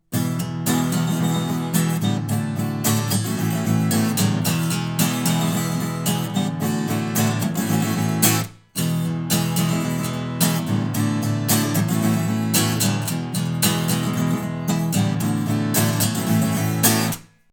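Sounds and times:
guitar air: 0.0 - 17.5.

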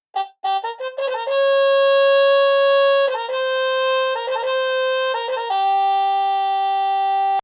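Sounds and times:
gramophone trumpet music: 0.0 - 7.4.

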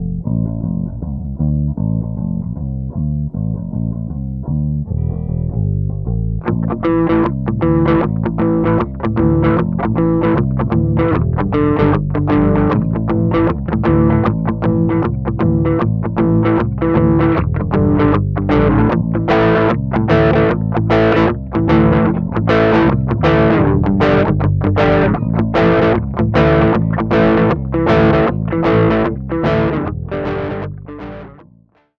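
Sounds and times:
grunge music: 0.0 - 31.8.

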